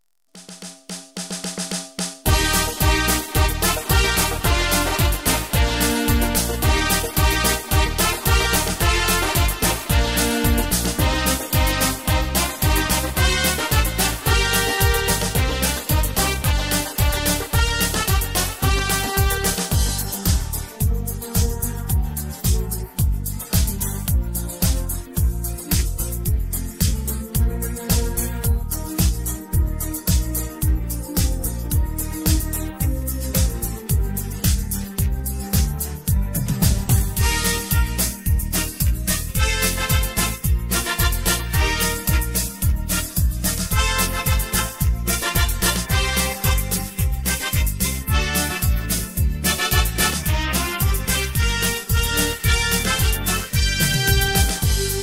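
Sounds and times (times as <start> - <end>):
Ukrainian instrumental songs: 2.2 - 55.0.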